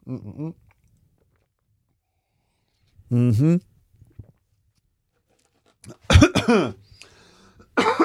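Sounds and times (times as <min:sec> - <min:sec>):
coughing after tea went down the wrong way: 0:05.9 - 0:06.8, 0:07.7 - 0:08.0
throat clearing: 0:05.9 - 0:06.8, 0:07.8 - 0:08.0.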